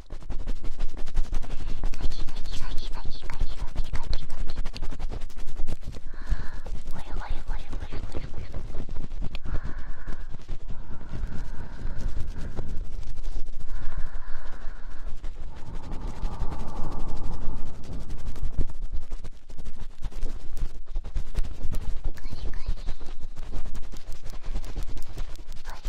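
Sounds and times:
super-fast ear poking scratchy taps and rubbing against the microphone: 0:00.0 - 0:13.8, 0:17.8 - 0:25.8
low rumble: 0:05.2 - 0:25.8.

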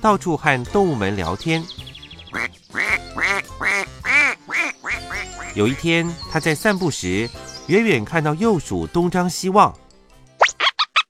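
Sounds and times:
speech: 0:00.0 - 0:01.8, 0:05.6 - 0:09.8
duck quacking: 0:02.3 - 0:05.8.

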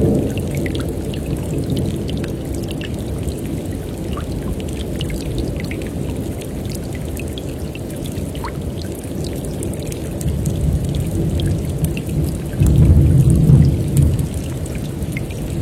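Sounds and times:
rain falling over a rainforest stream: 0:00.0 - 0:15.6
rainforest stream water rushing: 0:00.0 - 0:15.6
drips and taps: 0:04.1 - 0:15.4
deep rumbling: 0:12.6 - 0:15.6.

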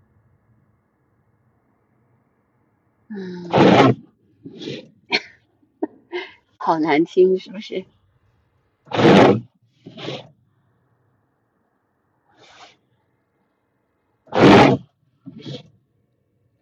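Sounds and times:
speech: 0:03.1 - 0:04.7, 0:06.7 - 0:08.0
wipers scraping snow on car windshield: 0:08.9 - 0:10.3, 0:14.4 - 0:15.6.

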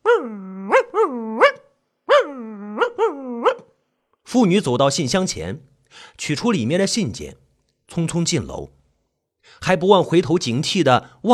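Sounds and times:
small pet dog barking at a driver: 0:00.0 - 0:03.7
speech: 0:04.3 - 0:08.8, 0:09.4 - 0:11.3.

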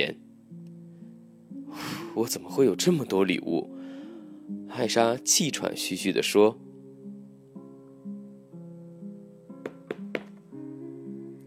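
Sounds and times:
speech: 0:02.2 - 0:03.8, 0:04.5 - 0:06.7
hurried knocking on a door: 0:09.6 - 0:10.3.

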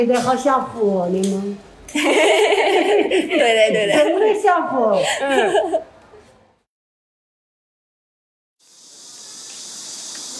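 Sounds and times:
speech: 0:00.0 - 0:05.9
laughter: 0:01.9 - 0:05.9
cicadas droning in a dense shrill buzz: 0:08.6 - 0:10.3.

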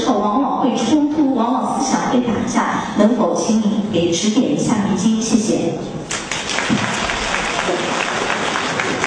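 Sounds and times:
speech: 0:00.2 - 0:06.1
audience applause: 0:06.1 - 0:09.0.

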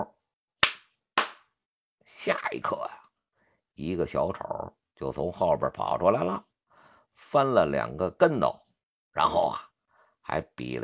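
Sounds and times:
hands clapping: 0:00.6 - 0:01.4
speech: 0:02.2 - 0:02.9, 0:03.8 - 0:06.5, 0:07.2 - 0:08.6, 0:09.2 - 0:09.7, 0:10.3 - 0:10.8.

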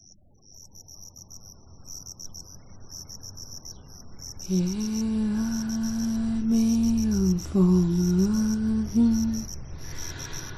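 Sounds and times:
cricket chirping: 0:00.0 - 0:10.5
low steady rumble: 0:04.4 - 0:10.5
speech: 0:04.5 - 0:05.3.

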